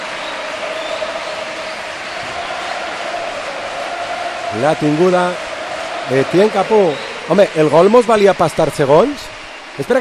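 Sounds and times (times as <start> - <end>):
football stadium crowd singing at a match: 0.0 - 7.6
speech: 4.5 - 5.5, 6.1 - 9.9.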